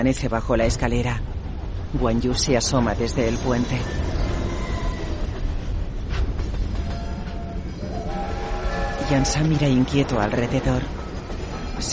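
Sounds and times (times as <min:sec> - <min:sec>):
speech: 0:00.0 - 0:01.3, 0:01.9 - 0:04.3, 0:09.1 - 0:11.0
freight train passing with rattling wagons: 0:00.0 - 0:11.9.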